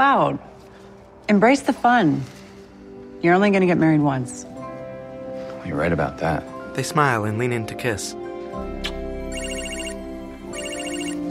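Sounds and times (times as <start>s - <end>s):
speech: 0.0s - 0.5s, 1.3s - 2.4s, 3.2s - 4.5s, 5.6s - 9.0s
phone ringtone electronic warble: 9.3s - 11.3s.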